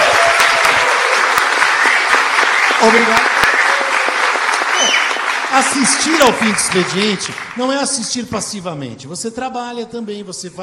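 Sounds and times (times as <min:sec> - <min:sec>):
studio audience applause at a talk show: 0:00.0 - 0:08.5
speech: 0:02.8 - 0:03.4, 0:05.5 - 0:10.6.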